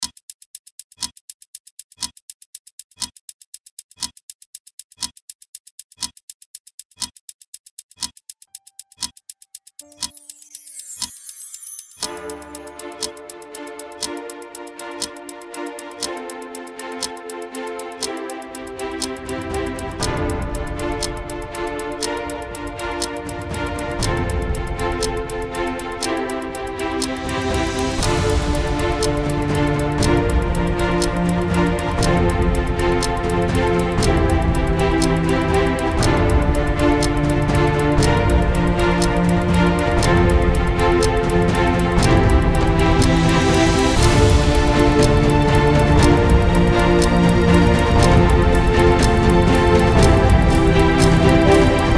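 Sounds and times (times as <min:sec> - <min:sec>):
epic inspirational generic music: 0:12.0 - 0:51.9.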